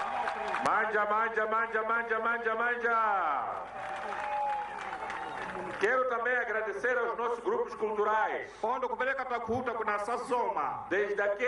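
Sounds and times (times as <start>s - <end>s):
crowd applause: 0.0s - 1.0s, 3.5s - 5.9s
speech: 0.8s - 4.3s, 5.6s - 11.4s.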